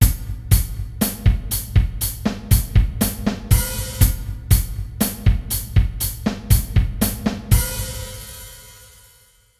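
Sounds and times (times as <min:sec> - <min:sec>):
drum beat at 60 bpm: 0:00.0 - 0:09.1.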